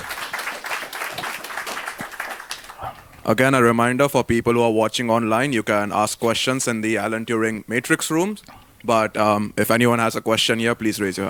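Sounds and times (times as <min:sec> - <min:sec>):
audience applause after a talk: 0:00.0 - 0:03.2
speech: 0:03.2 - 0:11.2.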